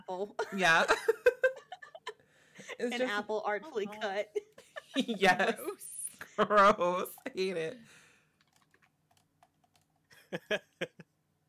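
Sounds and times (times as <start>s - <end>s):
speech: 0.1s - 1.2s, 2.7s - 8.0s, 10.3s - 11.0s
typing a Google image search on a computer keyboard: 8.4s - 10.0s.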